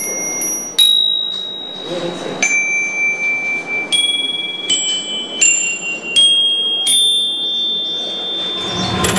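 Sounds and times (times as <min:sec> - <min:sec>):
small metal bells ringing: 0:00.0 - 0:09.1.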